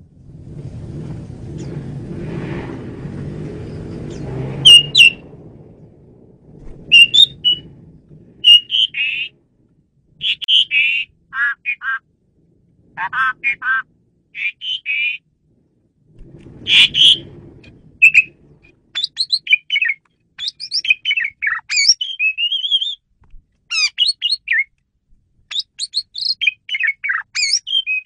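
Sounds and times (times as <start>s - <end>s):
low rumbling hum: 0.0s - 21.6s, 24.7s - 25.5s
Asian pied starling whistles: 4.1s - 5.2s, 6.9s - 7.6s, 8.4s - 9.3s, 16.7s - 17.3s, 18.0s - 18.4s, 19.0s - 23.0s, 23.7s - 24.7s, 25.5s - 28.0s.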